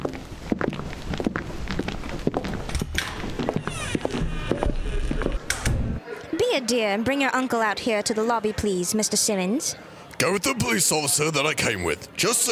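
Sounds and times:
footsteps of three people walking in: 0:00.0 - 0:06.0
busy noise: 0:00.0 - 0:12.4
speech: 0:06.6 - 0:12.4.

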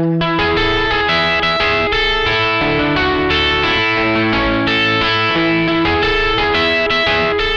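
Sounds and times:
guitar with capo at fifth fret strumming chords with chorus effect: 0:00.0 - 0:07.5.

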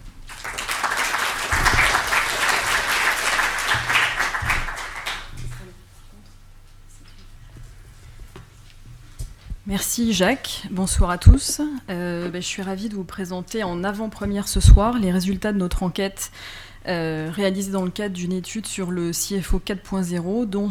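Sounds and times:
audience applause: 0:00.1 - 0:05.7
speech: 0:09.7 - 0:20.6.

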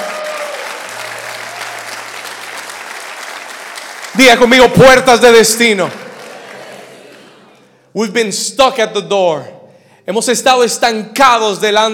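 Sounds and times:
audience applauding loudly: 0:00.0 - 0:07.7
speech: 0:04.2 - 0:06.0, 0:08.0 - 0:11.9.

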